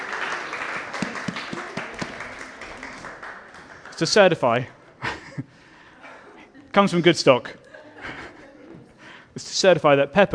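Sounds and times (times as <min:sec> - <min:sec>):
audience round of applause: 0:00.0 - 0:04.4
speech: 0:04.0 - 0:04.8, 0:06.8 - 0:08.2, 0:09.4 - 0:10.3
laughter: 0:05.0 - 0:09.0.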